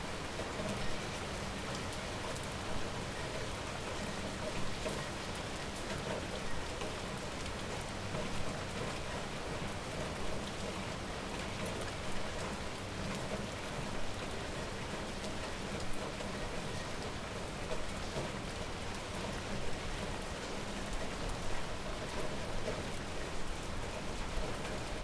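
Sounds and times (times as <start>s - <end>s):
rain: 0.0s - 25.0s.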